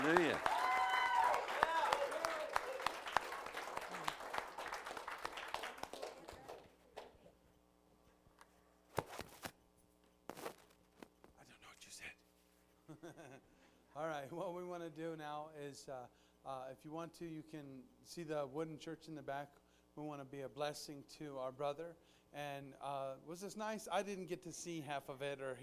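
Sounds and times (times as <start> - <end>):
audience applause: 0.0 - 6.8
speech: 14.3 - 25.6.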